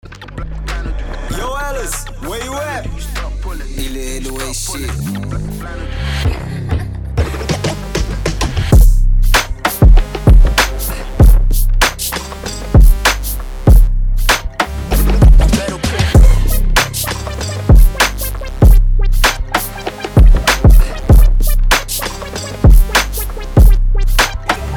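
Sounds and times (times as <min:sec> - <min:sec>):
drum kit: 0:07.2 - 0:24.7.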